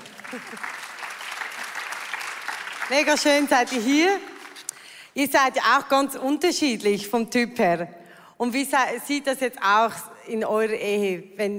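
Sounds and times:
audience applause: 0:00.0 - 0:03.5
speech: 0:00.3 - 0:00.8, 0:02.9 - 0:04.3, 0:05.2 - 0:11.5.

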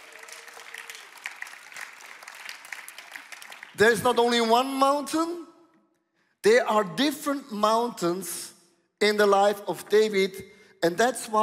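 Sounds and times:
audience applauding during a church service: 0:00.0 - 0:03.9
sharper individual claps: 0:00.0 - 0:04.0
speech: 0:03.8 - 0:05.5, 0:06.4 - 0:11.4.

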